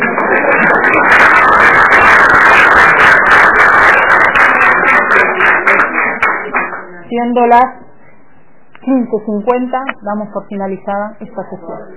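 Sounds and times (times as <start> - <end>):
room full of people applauding: 0.0 - 7.0
speech: 7.2 - 7.8, 8.8 - 11.9.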